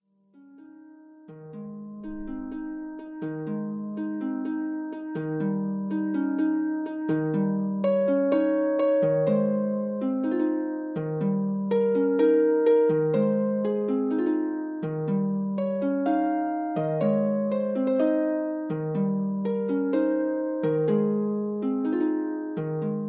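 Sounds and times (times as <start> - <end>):
harp: 0.0 - 23.0.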